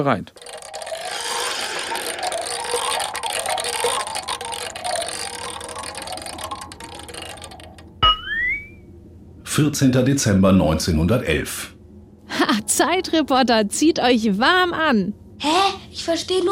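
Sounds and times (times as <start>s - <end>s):
speech: 0.0s - 0.5s, 9.6s - 11.8s, 12.4s - 16.5s
spinning wheel ratchet clicking: 0.3s - 8.0s
rising whistle-like tone: 0.4s - 8.9s.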